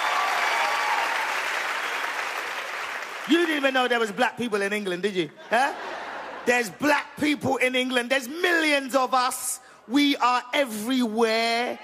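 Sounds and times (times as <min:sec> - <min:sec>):
audience clapping: 0:00.0 - 0:04.2
speech: 0:03.2 - 0:11.8
laughter: 0:05.3 - 0:07.0.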